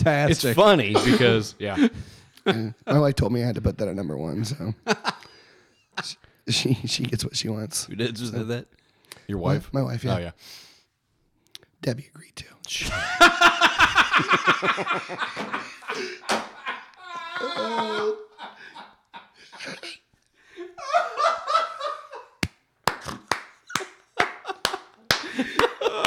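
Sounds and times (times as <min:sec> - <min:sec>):
speech: 0:00.0 - 0:05.2, 0:06.0 - 0:10.7, 0:11.8 - 0:16.5, 0:17.4 - 0:18.6
people laughing: 0:00.8 - 0:02.9, 0:12.8 - 0:22.5, 0:23.7 - 0:26.0
slow hand claps: 0:22.4 - 0:26.0.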